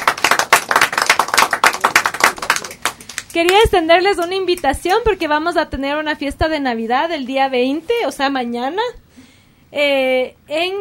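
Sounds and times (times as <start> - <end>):
audience clapping: 0.0 - 4.3
speech: 3.4 - 9.0, 9.7 - 10.7.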